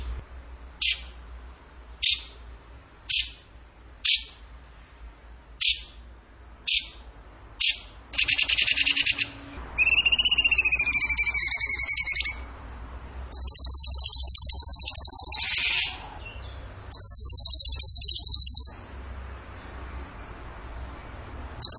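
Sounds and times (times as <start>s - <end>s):
bird trilling song: 0.8s - 1.2s, 2.0s - 2.4s, 3.1s - 4.4s, 5.6s - 6.0s, 6.7s - 12.6s, 13.3s - 19.0s, 21.6s - 21.7s.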